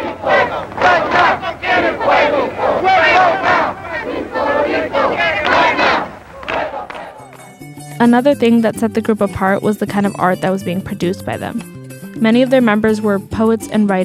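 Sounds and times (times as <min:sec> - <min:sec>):
crowd chanting in a Young Lords protest march for Puerto Rico: 0:00.0 - 0:08.0
speech: 0:08.0 - 0:14.0.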